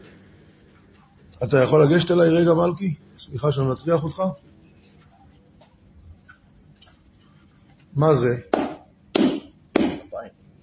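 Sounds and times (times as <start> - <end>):
speech: 1.4 - 4.5, 8.0 - 8.6
hand clapping: 8.5 - 10.1.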